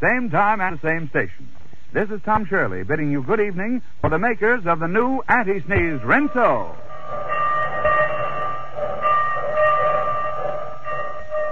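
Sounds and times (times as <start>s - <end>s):
speech: 0.0s - 7.3s
train sound effect steady chord-like whistle: 6.0s - 11.5s.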